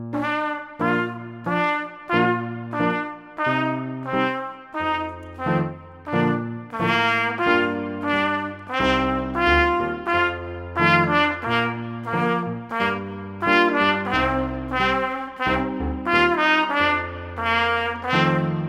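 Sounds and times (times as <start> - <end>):
trumpet playing a folk tune: 0.2 - 18.6.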